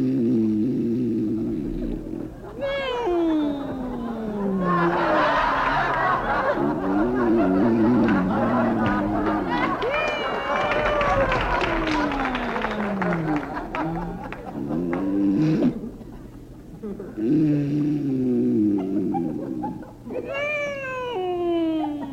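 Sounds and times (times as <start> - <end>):
loud exaggerated snoring performed by a voice: 0.0 - 5.2, 6.5 - 9.5, 12.5 - 15.9, 16.9 - 19.4
laughter: 1.4 - 22.1.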